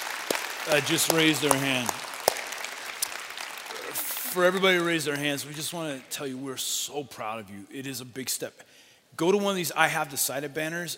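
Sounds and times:
audience applause: 0:00.0 - 0:05.2
speech: 0:00.6 - 0:02.1, 0:04.4 - 0:10.9.

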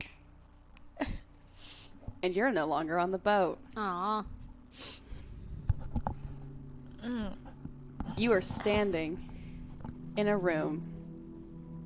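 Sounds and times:
finger snap: 0:00.0 - 0:01.4
low hum: 0:00.0 - 0:11.8
speech: 0:02.2 - 0:04.9, 0:07.0 - 0:07.5, 0:08.2 - 0:09.3, 0:10.2 - 0:10.9.

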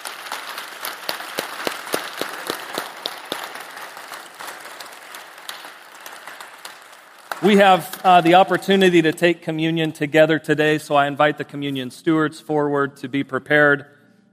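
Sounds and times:
audience applause: 0:00.0 - 0:09.3
speech: 0:07.4 - 0:14.0.

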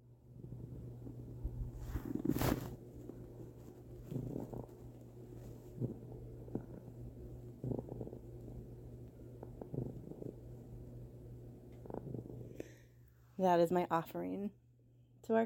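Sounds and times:
cat purring: 0:00.3 - 0:12.8
speech: 0:13.4 - 0:14.6.

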